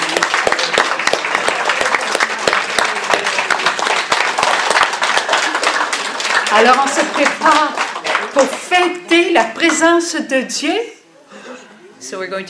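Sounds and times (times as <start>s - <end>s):
audience applauding: 0.0s - 9.8s
speech: 6.5s - 7.8s, 8.4s - 10.9s, 12.1s - 12.4s.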